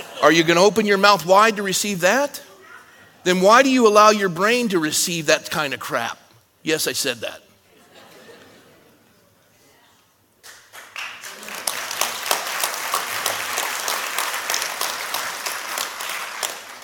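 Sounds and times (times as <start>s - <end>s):
speech: 0.2s - 2.5s, 3.2s - 7.4s
audience applause: 10.5s - 16.8s.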